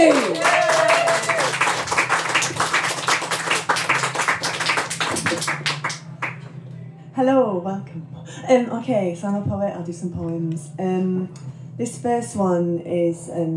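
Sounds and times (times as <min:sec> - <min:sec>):
speech: 0:00.0 - 0:00.6, 0:07.2 - 0:13.5
audience applause for a poet: 0:00.0 - 0:06.5.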